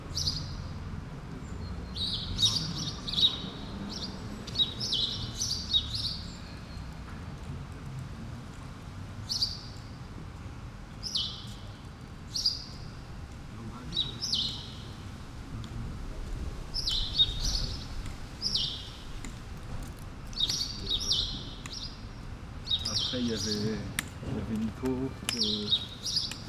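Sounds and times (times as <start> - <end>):
low rumble of city traffic: 0.0 - 26.4
sparrow chirping: 0.1 - 0.8, 1.4 - 6.9, 11.0 - 11.7, 12.3 - 13.1, 13.8 - 15.3, 16.7 - 19.6, 20.2 - 26.4
speech: 24.8 - 25.8.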